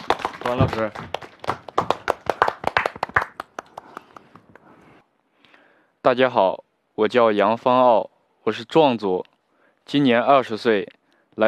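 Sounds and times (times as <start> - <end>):
audience clapping welcoming a dance student at a Chinese show: 0.0 - 4.8
speech: 0.5 - 1.6, 6.0 - 9.3, 9.9 - 11.4.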